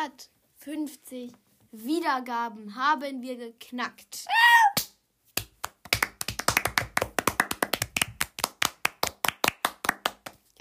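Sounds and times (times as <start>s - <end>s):
speech: 0.0s - 4.8s
quiet hand clapping in background: 4.8s - 10.5s.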